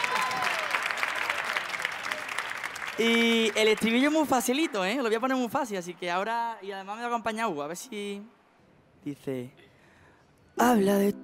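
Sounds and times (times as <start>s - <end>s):
whistles and cheers: 0.0s - 2.4s
audience clapping: 0.0s - 5.8s
speech: 3.0s - 8.4s, 9.0s - 9.7s, 10.6s - 11.2s.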